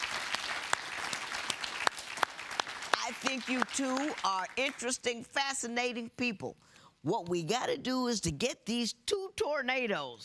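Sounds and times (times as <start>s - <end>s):
scattered hand clapping: 0.0s - 5.0s
speech: 3.2s - 10.2s.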